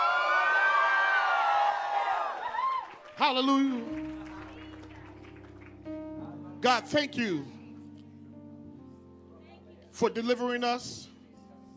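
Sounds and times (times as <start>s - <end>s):
audience screaming and shouting: 0.0s - 3.0s
speech: 3.2s - 4.2s, 6.6s - 7.6s, 10.0s - 11.1s.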